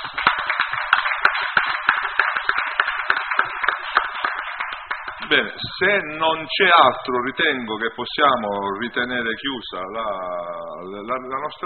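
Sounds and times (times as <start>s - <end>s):
applause at a meeting: 0.0s - 5.7s
speech: 5.3s - 11.6s.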